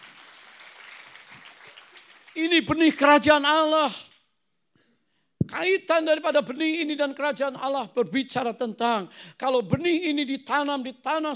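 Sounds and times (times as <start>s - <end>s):
audience applause: 0.0s - 2.4s
speech: 2.4s - 4.1s, 5.5s - 11.3s.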